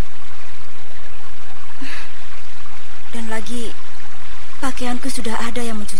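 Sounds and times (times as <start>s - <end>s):
flowing river stream: 0.0s - 5.9s
speech: 3.2s - 3.8s, 4.6s - 5.9s.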